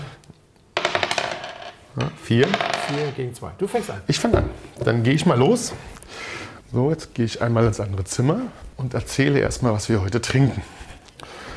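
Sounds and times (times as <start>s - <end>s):
die rolled across a hard table: 0.8s - 3.2s
speech: 2.0s - 10.8s.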